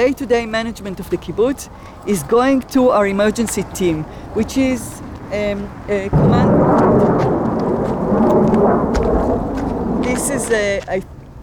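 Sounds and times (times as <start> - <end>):
speech: 0.0 - 7.3, 8.5 - 11.2
helicopter firing a rocket: 6.1 - 10.3.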